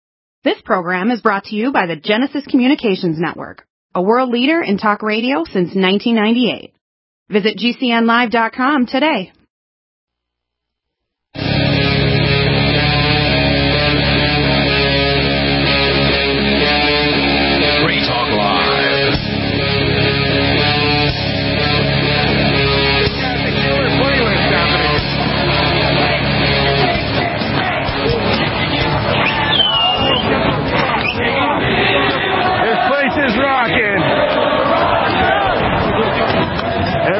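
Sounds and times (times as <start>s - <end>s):
speech: 0.4s - 9.4s
dense loud street crowd roaring: 11.4s - 37.1s
people shouting: 12.6s - 37.1s.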